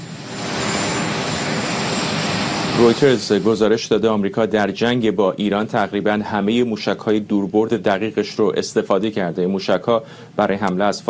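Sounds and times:
Marine One presidential helicopter engine and rotor roar at a joint base: 0.0s - 3.8s
speech: 2.8s - 11.0s.

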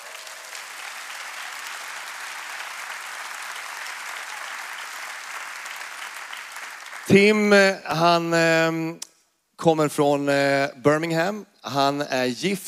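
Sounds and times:
audience applause: 0.0s - 7.4s
speech: 7.1s - 12.6s.

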